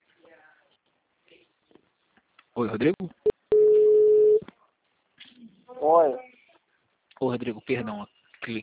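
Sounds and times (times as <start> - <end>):
speech: 2.6 - 3.2, 7.4 - 8.6
telephone tone after a dropped call: 3.5 - 4.4.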